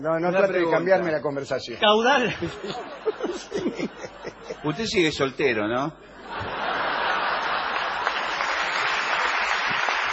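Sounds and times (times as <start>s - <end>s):
speech: 0.0s - 6.4s
laughter: 2.3s - 5.1s, 6.1s - 8.6s
audience applause: 6.5s - 10.1s.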